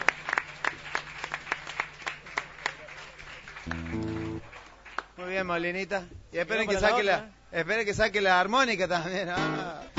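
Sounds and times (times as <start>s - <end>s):
rhythmic clapping for dancers at a folk music gathering: 0.0s - 5.2s
speech: 5.4s - 9.9s.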